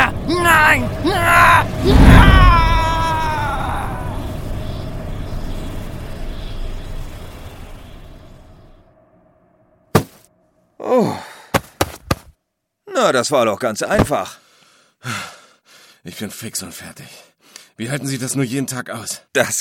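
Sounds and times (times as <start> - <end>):
ghost's loud scream as it is absorbed: 0.0 - 4.4
speech: 13.0 - 15.4, 16.0 - 19.5.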